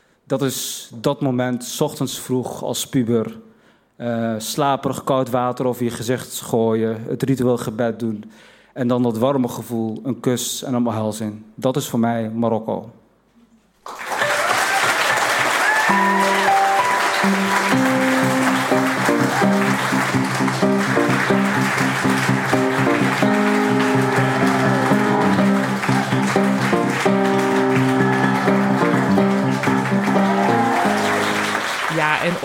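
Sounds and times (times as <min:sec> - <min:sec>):
speech: 0:00.3 - 0:13.0
applause: 0:13.8 - 0:32.4
live piano chords and notes: 0:15.7 - 0:32.4.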